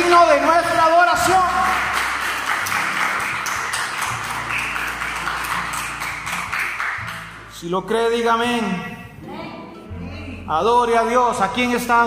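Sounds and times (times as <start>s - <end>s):
audience clapping: 0.0s - 7.5s
speech: 7.6s - 9.0s, 10.5s - 12.0s.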